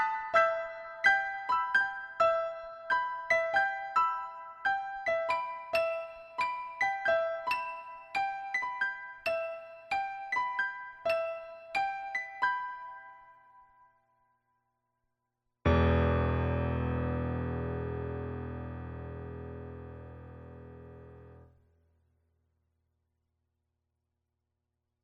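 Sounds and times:
piano interlude: 0.0 - 13.5, 15.7 - 21.4.

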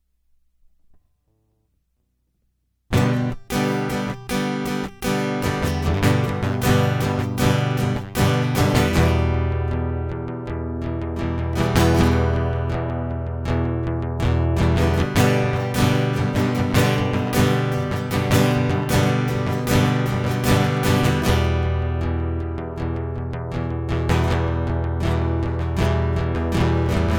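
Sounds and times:
guitar loop: 2.9 - 27.1.

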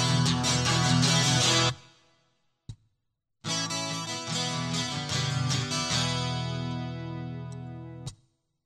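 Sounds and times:
guitar loop: 0.0 - 1.9, 3.4 - 8.2.

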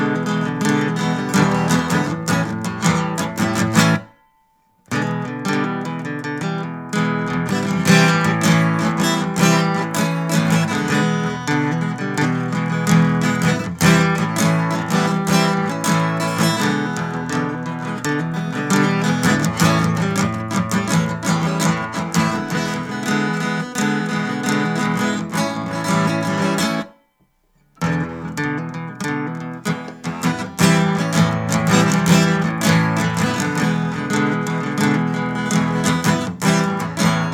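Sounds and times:
dance guitar instrumental: 0.0 - 27.0, 27.8 - 37.3.

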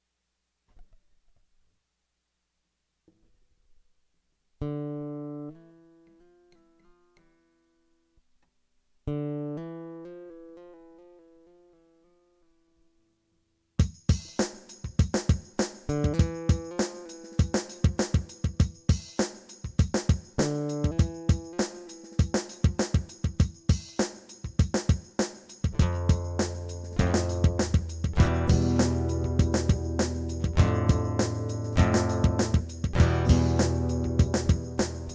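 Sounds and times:
instrumental music: 9.1 - 12.9, 13.8 - 35.1.

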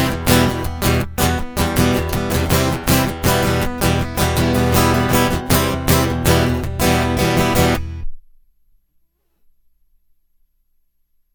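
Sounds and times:
prelude: 0.0 - 8.1.

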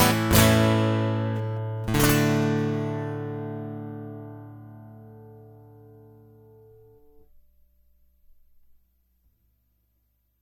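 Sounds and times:
guitar prelude: 0.0 - 7.2.

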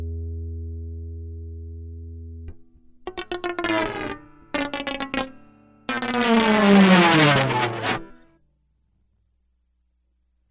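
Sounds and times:
guitar loop: 3.1 - 8.1.

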